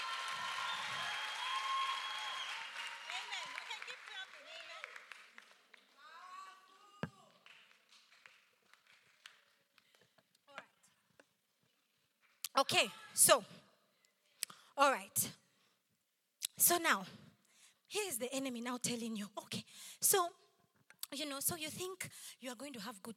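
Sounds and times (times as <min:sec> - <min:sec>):
audience clapping: 0:00.0 - 0:10.2
speech: 0:12.6 - 0:13.6, 0:14.8 - 0:15.4, 0:16.7 - 0:17.2, 0:17.9 - 0:20.4, 0:21.1 - 0:23.1.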